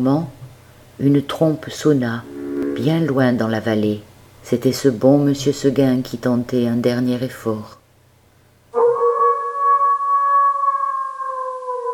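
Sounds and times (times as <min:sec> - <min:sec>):
speech: 0:00.0 - 0:00.4, 0:01.0 - 0:07.8
wolf howling in the mountains: 0:08.8 - 0:11.9.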